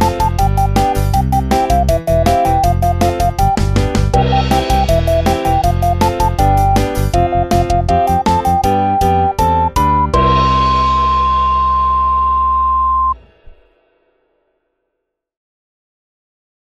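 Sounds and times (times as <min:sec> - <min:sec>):
cheerful powerful jingle: 0:00.0 - 0:13.2.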